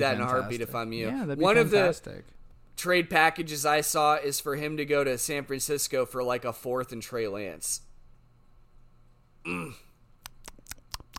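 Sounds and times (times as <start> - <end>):
speech: 0.0 - 7.9, 9.4 - 9.9
person chewing: 10.2 - 11.1.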